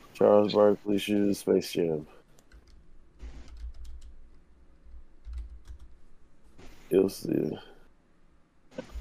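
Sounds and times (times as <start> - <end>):
speech: 0.2 - 2.2, 6.9 - 7.7
typing on a computer keyboard: 2.4 - 4.2, 4.8 - 6.0.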